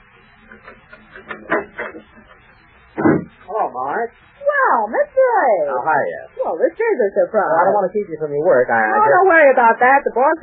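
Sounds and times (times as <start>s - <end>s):
door opening: 3.0s - 3.4s
speech: 3.8s - 10.4s.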